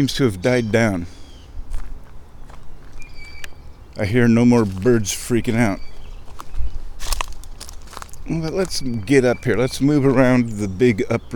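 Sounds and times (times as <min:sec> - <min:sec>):
speech: 0:00.0 - 0:01.2, 0:04.0 - 0:05.9, 0:08.3 - 0:11.3
footsteps crunching through woods: 0:00.0 - 0:11.0.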